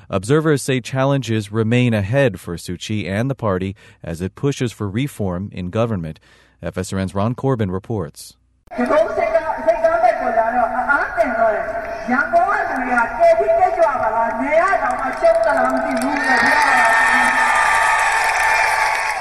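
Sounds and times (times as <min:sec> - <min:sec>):
speech: 0:00.1 - 0:17.4
crowd cheering at a political rally: 0:11.5 - 0:19.1.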